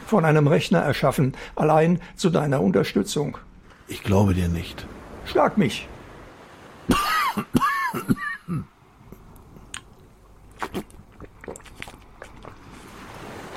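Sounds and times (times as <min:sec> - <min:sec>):
speech: 0:00.1 - 0:05.9
coughing: 0:06.9 - 0:08.8.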